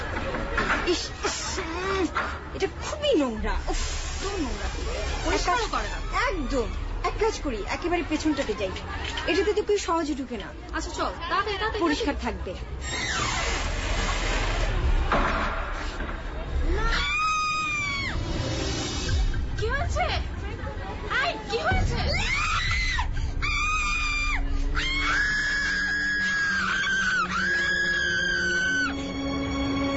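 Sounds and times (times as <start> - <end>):
dense noisy babble: 0.0 - 27.0
speech: 0.9 - 13.2
two girls screaming in an old filthy toilet block: 16.7 - 18.2, 22.0 - 29.8.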